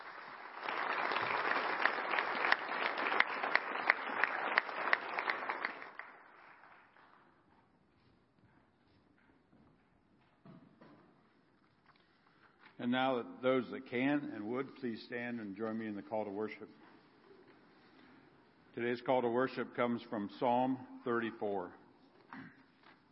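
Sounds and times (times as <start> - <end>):
audience applause: 0.0 - 6.8
speech: 12.8 - 16.8, 18.8 - 21.8.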